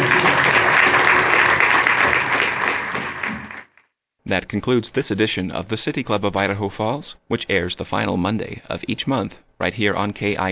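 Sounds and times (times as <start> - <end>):
audience applause: 0.0 - 3.8
speech: 4.3 - 10.5.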